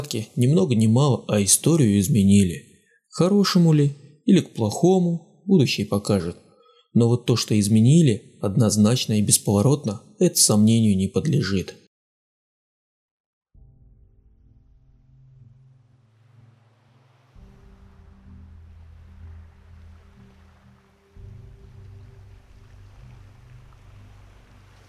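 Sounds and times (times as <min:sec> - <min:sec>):
speech: 0:00.0 - 0:11.8
water rushing past a boat's hull: 0:15.1 - 0:24.8.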